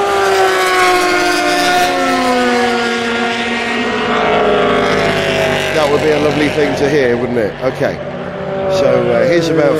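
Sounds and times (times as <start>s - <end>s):
racing motor cars including Toyotas driving past: 0.0s - 9.7s
speech: 6.3s - 8.1s, 8.7s - 9.7s.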